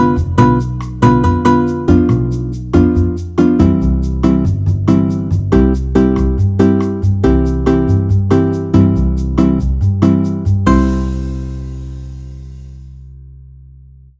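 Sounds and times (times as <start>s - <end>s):
C major scales being played: 0.0s - 13.0s.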